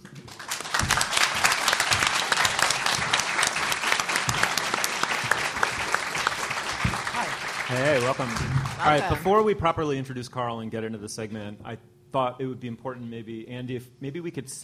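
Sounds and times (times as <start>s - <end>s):
audience clapping: 0.0s - 9.5s
speech: 7.7s - 14.6s.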